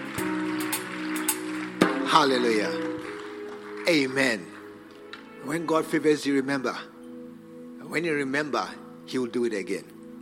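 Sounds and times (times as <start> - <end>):
audience clapping hands: 0.0 - 5.3
speech: 2.1 - 2.9, 3.9 - 4.5, 5.4 - 6.9, 7.9 - 9.9.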